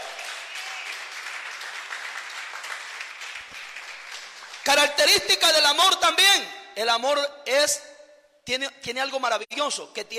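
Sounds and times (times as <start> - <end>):
audience applause: 0.0 - 4.7
speech: 4.7 - 7.9, 8.5 - 10.1.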